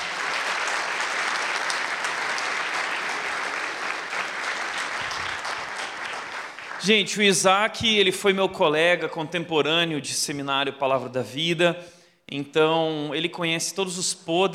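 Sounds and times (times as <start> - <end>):
round of applause: 0.0 - 7.1
speech: 6.8 - 14.5.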